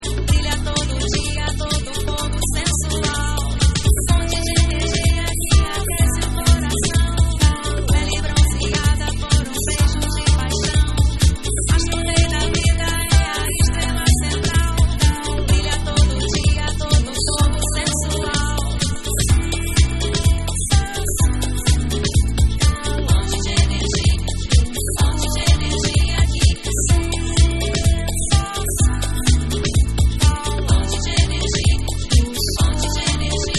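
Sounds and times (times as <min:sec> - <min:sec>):
guitar mix: 0:00.0 - 0:33.5.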